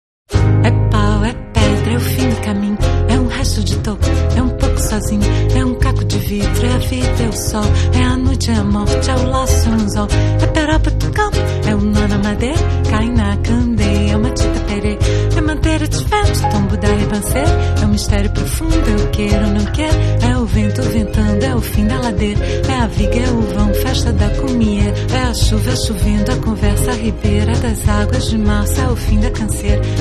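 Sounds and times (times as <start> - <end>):
harp bossa nova: 0.3 - 29.9.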